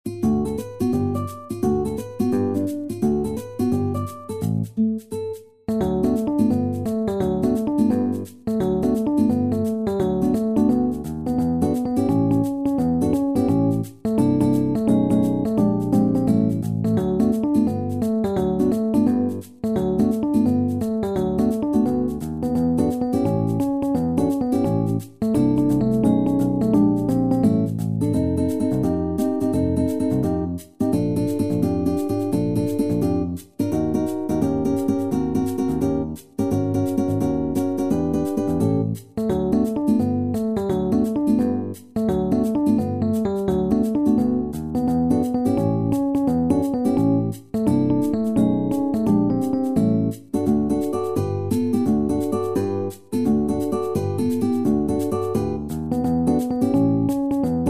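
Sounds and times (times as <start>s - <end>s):
MIDI music: 0.1s - 57.6s.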